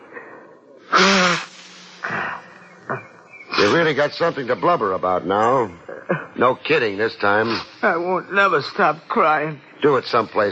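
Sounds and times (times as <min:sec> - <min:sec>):
nose blowing into handkerchief: 0:00.9 - 0:02.5
speech: 0:03.7 - 0:05.8, 0:06.4 - 0:10.4.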